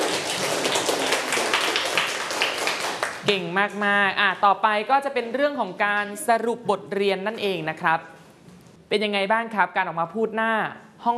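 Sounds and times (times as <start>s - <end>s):
group applause: 0.0s - 3.3s
speech: 3.3s - 8.2s, 8.9s - 11.1s.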